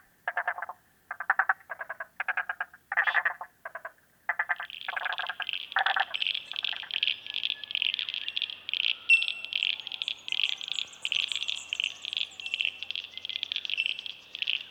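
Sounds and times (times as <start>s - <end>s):
frog calls in short bright pulses: 0.0s - 14.6s.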